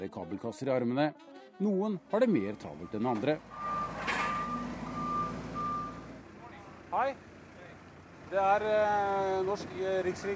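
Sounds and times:
speech: 0.0s - 3.6s, 6.9s - 7.3s, 8.3s - 10.3s
forklift reversing alarm beeps: 2.6s - 6.2s.

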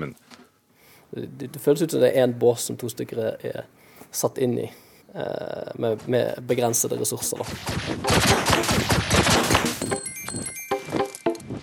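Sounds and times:
speech: 1.1s - 10.0s
video game sound effects from Owlboy: 7.8s - 11.6s.

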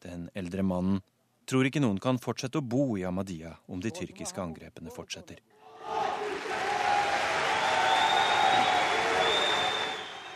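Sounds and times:
speech: 0.3s - 6.0s
parliament cheering and applause: 5.8s - 10.3s.

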